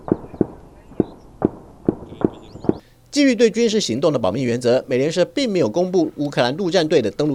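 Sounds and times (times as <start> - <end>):
artillery fire: 0.0 - 2.8
intense gunfire: 0.0 - 2.8
speech: 3.2 - 7.3.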